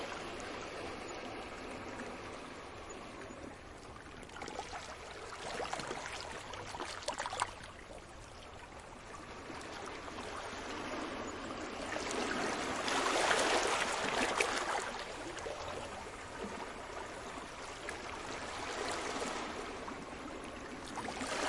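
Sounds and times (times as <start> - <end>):
sea waves at night in Cyprus: 0.0 - 21.4.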